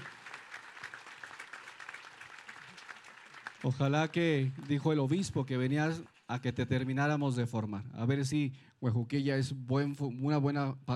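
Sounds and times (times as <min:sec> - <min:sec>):
welcoming applause: 0:00.0 - 0:07.0
speech: 0:03.6 - 0:10.9.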